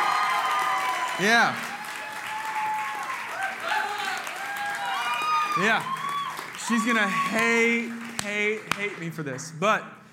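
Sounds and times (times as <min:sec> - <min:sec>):
crowd cheering and whooping: 0:00.0 - 0:08.0
crowd applause: 0:00.0 - 0:09.6
speech: 0:01.2 - 0:01.7, 0:05.6 - 0:06.0, 0:06.7 - 0:10.0.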